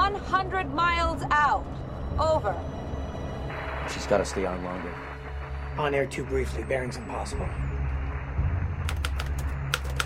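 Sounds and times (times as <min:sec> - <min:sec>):
low hum: 0:00.0 - 0:10.0
speech: 0:00.3 - 0:02.8, 0:03.9 - 0:05.1, 0:05.8 - 0:07.7
sailor typing at a keyboard: 0:08.8 - 0:10.0.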